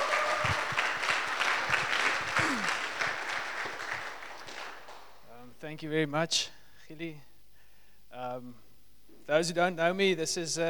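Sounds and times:
audience applause: 0.0 - 5.1
speech: 5.7 - 7.3, 8.2 - 8.7, 9.3 - 10.6.

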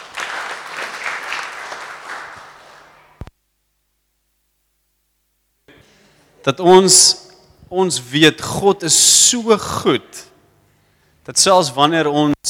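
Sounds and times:
audience applause: 0.0 - 3.2
speech: 6.4 - 10.3, 11.2 - 12.4.

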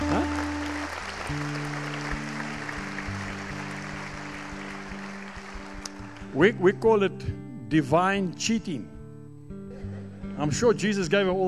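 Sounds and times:
audience clapping: 0.0 - 6.4
speech: 6.4 - 8.9, 10.4 - 11.4.

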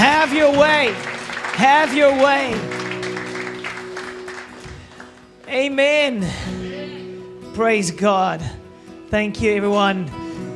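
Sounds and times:
church congregation clapping as an offering during worship: 0.0 - 5.8
speech: 0.8 - 2.8, 5.5 - 6.7, 7.6 - 10.2.

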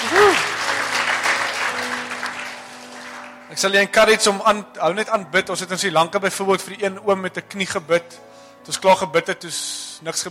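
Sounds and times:
audience hand clapping: 0.0 - 3.5
speech: 3.6 - 10.3.

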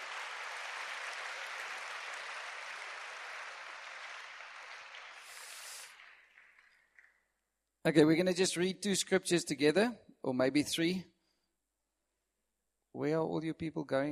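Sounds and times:
audience applause: 0.0 - 7.2
speech: 7.8 - 11.1, 13.0 - 14.0.

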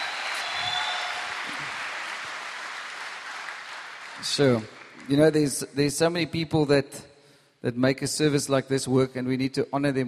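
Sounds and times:
audience applause: 0.0 - 5.4
speech: 4.2 - 10.0.

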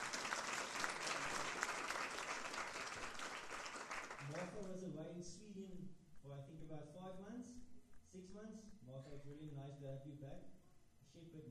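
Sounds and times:
audience clapping hands: 0.0 - 4.8
speech: 4.6 - 11.5.

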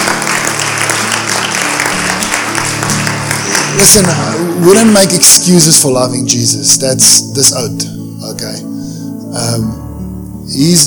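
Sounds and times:
audience clapping: 0.0 - 5.4
speech: 3.8 - 8.7, 9.3 - 9.8, 10.5 - 10.8.

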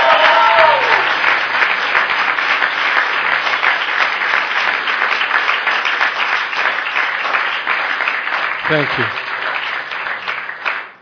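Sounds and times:
audience cheering: 0.0 - 1.4
audience applause: 0.0 - 10.9
speech: 8.7 - 9.3.

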